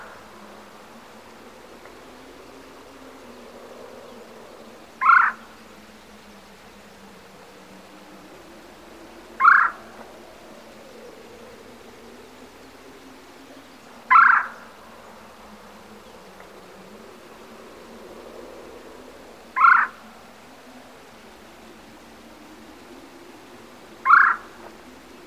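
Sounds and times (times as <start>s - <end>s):
woodpecker: 5.0s - 5.5s, 9.4s - 9.8s, 14.1s - 14.6s, 19.6s - 20.0s, 24.0s - 24.8s.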